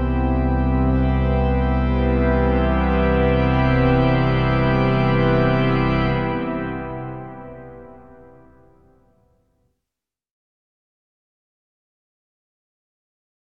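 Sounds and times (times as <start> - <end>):
organ song: 0.0 - 9.0.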